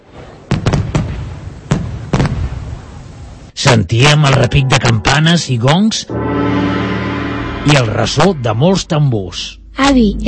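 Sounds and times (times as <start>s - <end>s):
fireworks exploding in the street: 0.0s - 3.0s
speech: 3.7s - 6.8s, 7.6s - 10.2s.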